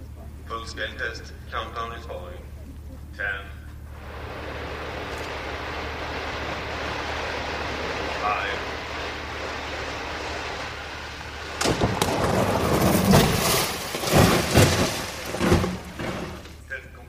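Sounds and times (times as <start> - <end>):
speech: 0.7 - 2.5, 3.2 - 4.2, 8.2 - 8.7
car engine roaring in a crash test: 3.7 - 16.7.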